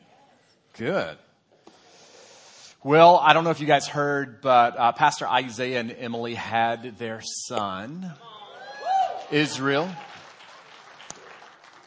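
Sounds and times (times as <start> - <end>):
speech: 0.8 - 1.3, 2.8 - 8.3, 9.3 - 10.1
weak audience applause: 8.5 - 11.8.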